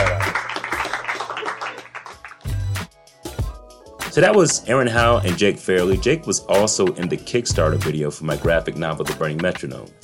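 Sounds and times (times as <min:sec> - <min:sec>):
small crowd clapping: 0:00.0 - 0:02.9
speech: 0:04.2 - 0:10.0.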